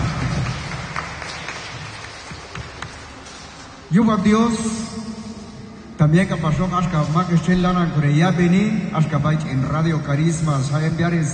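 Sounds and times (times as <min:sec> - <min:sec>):
crowd applauding: 0:00.0 - 0:03.4
speech: 0:03.9 - 0:05.1, 0:06.0 - 0:11.3.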